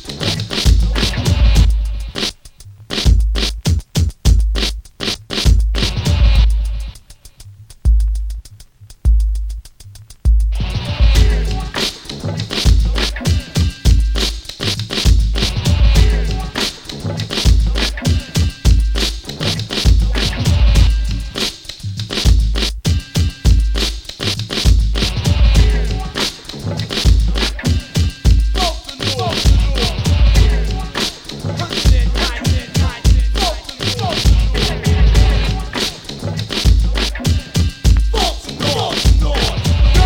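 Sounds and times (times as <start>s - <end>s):
instrumental noise music: 0.0s - 40.0s.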